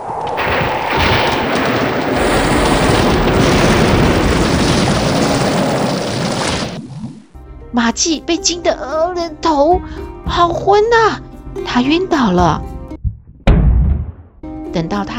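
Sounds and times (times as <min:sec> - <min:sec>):
loud thunder sound effect: 0:00.0 - 0:07.2
speech: 0:08.0 - 0:12.7, 0:14.8 - 0:15.1.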